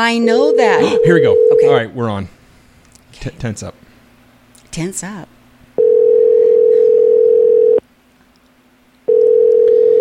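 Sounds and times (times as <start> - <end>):
speech: 0.0 - 2.4, 3.2 - 3.8, 4.8 - 5.4
landline telephone busy signal: 0.4 - 1.7, 5.8 - 7.8, 9.1 - 9.9.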